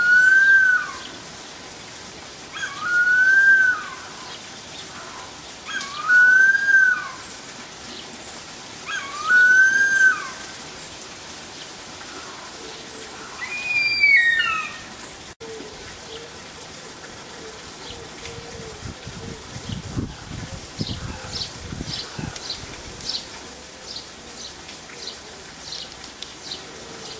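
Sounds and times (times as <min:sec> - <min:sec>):
Harpy eagle giving drawn-out whistled wails: 0:00.0 - 0:01.0, 0:02.6 - 0:04.0, 0:05.8 - 0:07.2, 0:08.9 - 0:10.4, 0:13.4 - 0:14.9.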